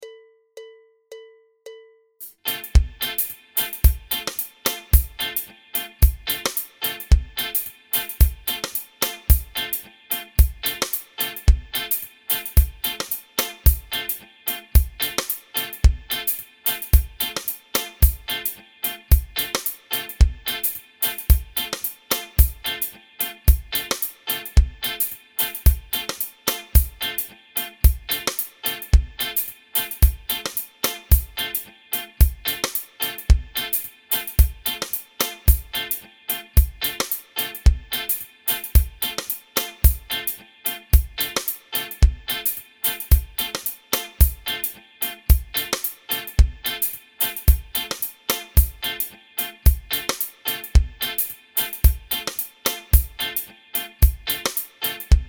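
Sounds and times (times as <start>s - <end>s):
improvisation in D minor seventh: 0.0s - 55.2s.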